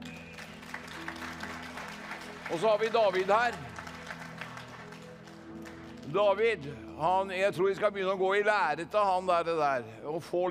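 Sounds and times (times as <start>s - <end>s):
audience applause: 0.0s - 6.2s
speech: 2.5s - 3.7s, 6.1s - 10.4s.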